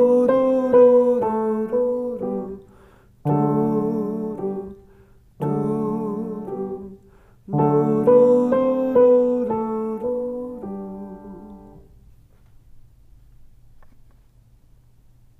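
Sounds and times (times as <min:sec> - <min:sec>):
French lullaby: 0:00.0 - 0:11.9.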